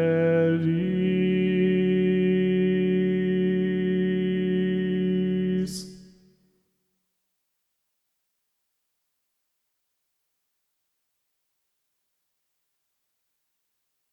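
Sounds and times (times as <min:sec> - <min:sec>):
tenor singing: 0:00.0 - 0:06.0.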